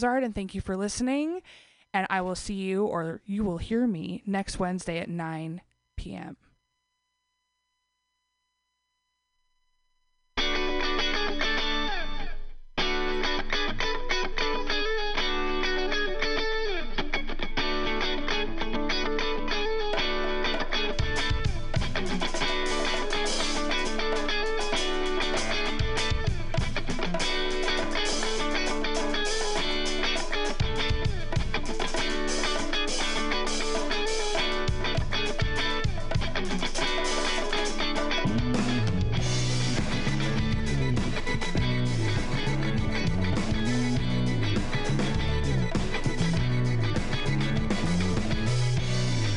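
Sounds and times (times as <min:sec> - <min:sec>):
speech: 0:00.0 - 0:06.4
effects-heavy guitar: 0:10.4 - 0:49.3.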